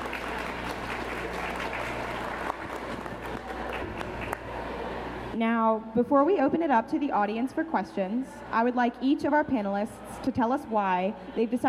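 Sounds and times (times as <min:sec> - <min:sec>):
audience applause: 0:00.0 - 0:04.9
speech: 0:05.4 - 0:11.6.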